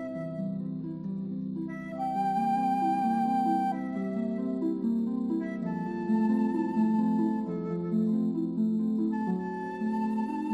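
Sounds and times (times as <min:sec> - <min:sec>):
flute: 0:00.0 - 0:10.5
harp: 0:00.0 - 0:10.5.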